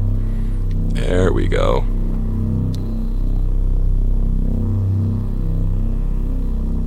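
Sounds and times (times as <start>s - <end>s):
synth bass with distortion: 0.0s - 6.8s
speech: 1.0s - 2.0s.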